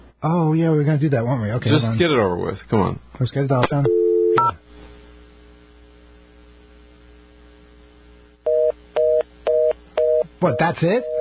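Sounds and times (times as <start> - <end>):
speech: 0.2 - 4.6, 10.4 - 11.2
steady telephone line hum: 3.8 - 4.6, 8.5 - 11.2.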